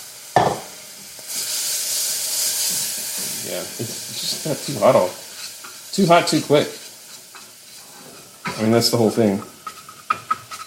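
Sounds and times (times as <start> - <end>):
water splashing into a hot pan: 0.0 - 8.5
cooking brown sugar sizzling: 0.0 - 10.6
speech: 3.5 - 5.2, 6.0 - 6.8, 8.6 - 9.6.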